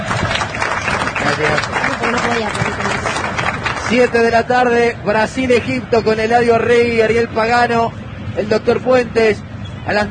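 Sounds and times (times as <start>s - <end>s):
applause: 0.0s - 4.5s
speech: 1.4s - 2.7s, 3.9s - 10.0s.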